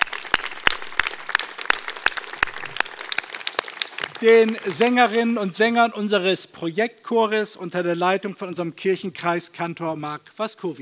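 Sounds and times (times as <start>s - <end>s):
audience clapping: 0.0s - 5.5s
speech: 4.2s - 10.8s.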